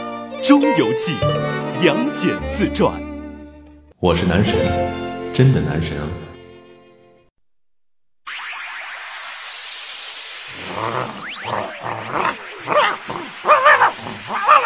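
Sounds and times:
speech: 0.5 - 3.1, 4.0 - 6.2
dog barking: 12.1 - 14.6.

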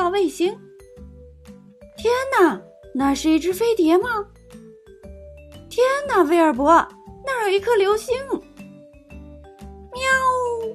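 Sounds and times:
speech: 0.2 - 0.7, 2.0 - 4.4, 5.7 - 8.5, 10.0 - 10.7
cat yowling loudly: 9.9 - 10.7.

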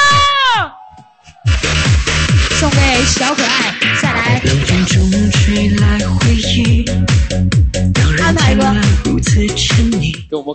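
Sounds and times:
loud high scream sliding downward in pitch: 0.0 - 2.2
crowd screaming and cheering at live DJ show: 0.0 - 2.6
thumping dance beat at live DJ show: 0.0 - 10.3
speech: 2.6 - 6.2, 8.6 - 10.5.

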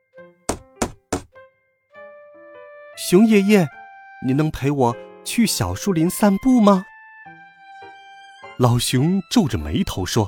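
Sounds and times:
knocking on a wooden door: 0.5 - 1.4
speech: 3.0 - 6.9, 8.6 - 10.2.

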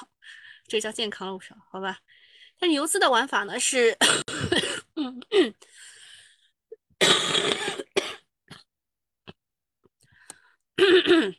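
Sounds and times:
speech: 0.7 - 5.9, 10.8 - 11.3
cough: 4.0 - 5.0, 7.0 - 8.7, 10.8 - 11.3.

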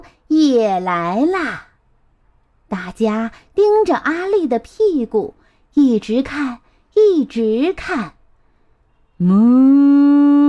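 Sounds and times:
speech: 0.3 - 1.7, 2.7 - 8.2, 9.2 - 10.4
person imitating a cow's moo: 9.2 - 10.4.

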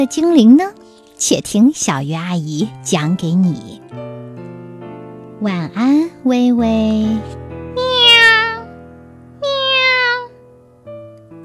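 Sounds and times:
speech: 0.0 - 4.1, 5.4 - 7.4
cat meowing: 7.8 - 8.7, 9.4 - 10.4.

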